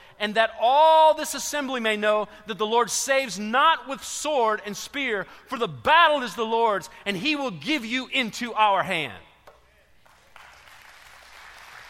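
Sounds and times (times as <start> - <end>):
speech: 0.2 - 9.2
audience applause: 10.0 - 11.8.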